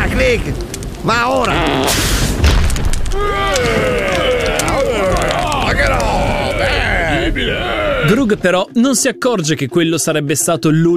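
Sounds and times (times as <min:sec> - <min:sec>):
lightning strike with thunder boom: 0:00.0 - 0:07.7
speech: 0:00.2 - 0:02.1, 0:07.3 - 0:10.9.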